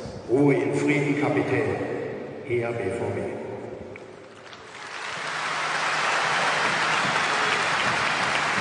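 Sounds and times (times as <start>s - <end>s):
speech: 0.3s - 3.4s
stadium applause after minute of silence: 4.2s - 8.5s.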